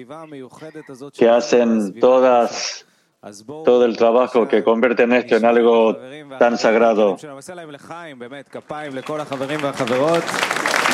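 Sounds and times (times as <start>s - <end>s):
speech: 0.0s - 10.9s
audience applause: 8.6s - 10.9s.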